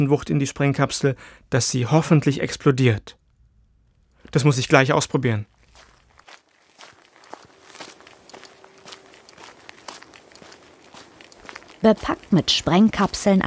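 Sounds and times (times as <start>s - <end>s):
speech: 0.0s - 3.2s, 4.3s - 5.9s, 11.8s - 13.4s
footsteps walking: 3.2s - 13.4s.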